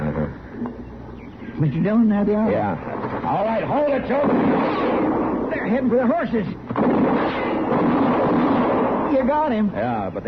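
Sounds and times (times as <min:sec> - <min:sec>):
speech: 0:01.6 - 0:07.0, 0:09.1 - 0:10.2
gunshots: 0:03.0 - 0:05.8, 0:06.7 - 0:09.6.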